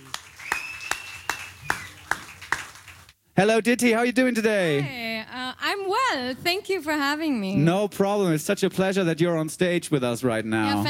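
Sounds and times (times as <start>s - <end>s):
audience clapping for a guest on stage at a gallery event: 0.0s - 3.2s
speech: 3.4s - 5.0s, 5.7s - 10.8s.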